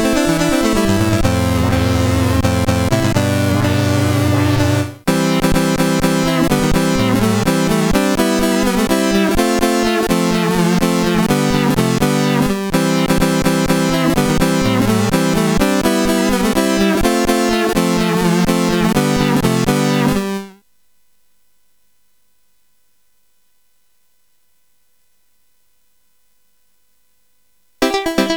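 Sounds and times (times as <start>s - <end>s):
CSG 8580 sound chip: 0.0s - 20.2s, 27.8s - 28.3s.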